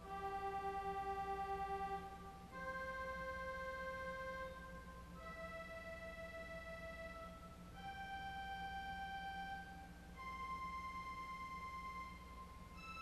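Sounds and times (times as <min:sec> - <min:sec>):
organ arpeggio on Voix Celeste organ stops: 0:00.0 - 0:12.9.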